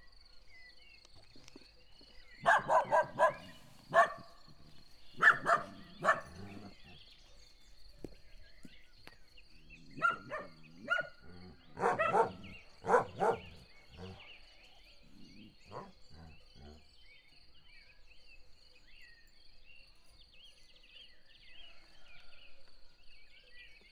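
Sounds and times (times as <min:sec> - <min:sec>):
dog at Egerturistaház: 0:02.4 - 0:07.0, 0:10.0 - 0:14.2.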